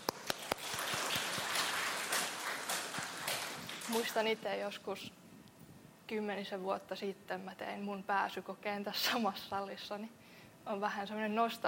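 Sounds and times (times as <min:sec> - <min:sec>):
lecture hall audience applause: 0:00.0 - 0:04.4
speech: 0:03.9 - 0:05.2, 0:06.1 - 0:11.6.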